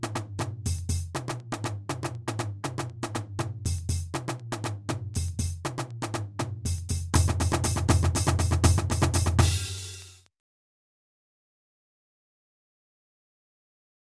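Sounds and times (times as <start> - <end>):
jungle drum beat: 0.0 - 10.3.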